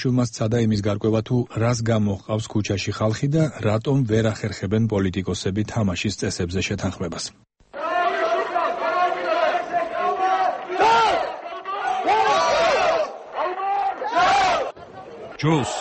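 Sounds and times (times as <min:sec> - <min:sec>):
speech: 0:00.0 - 0:07.5, 0:15.4 - 0:15.7
crowd chanting in unison at a protest rally in Georgia: 0:07.8 - 0:15.7.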